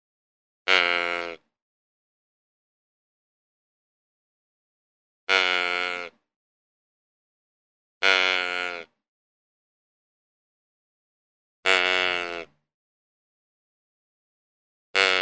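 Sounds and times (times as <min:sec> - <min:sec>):
deer giving nasal bleats: 0:00.7 - 0:01.5, 0:05.3 - 0:06.2, 0:08.0 - 0:08.9, 0:11.6 - 0:12.6, 0:15.0 - 0:15.2.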